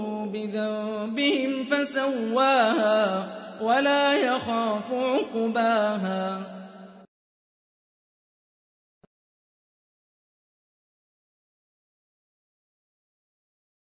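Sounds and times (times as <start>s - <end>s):
Quran recitation: 0.0s - 7.1s.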